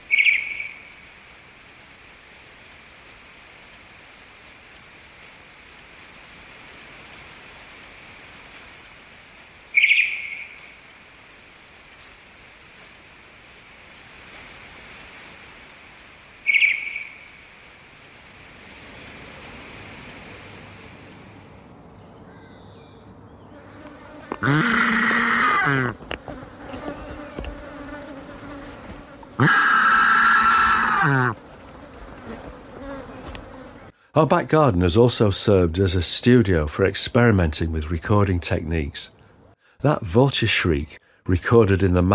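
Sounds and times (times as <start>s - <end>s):
slowed-down pipistrelle bat echolocation calls: 0.1s - 1.0s, 9.3s - 10.8s, 12.0s - 13.0s, 13.6s - 15.4s, 16.0s - 17.4s, 20.8s - 21.7s, 24.4s - 26.0s, 29.4s - 31.4s
speech: 34.2s - 39.2s, 39.8s - 42.1s.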